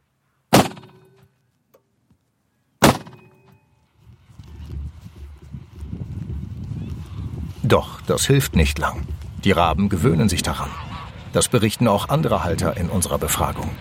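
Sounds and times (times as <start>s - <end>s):
gas cannon bird scarer firing: 0.5s - 1.0s, 2.8s - 3.4s
speech: 7.7s - 13.8s.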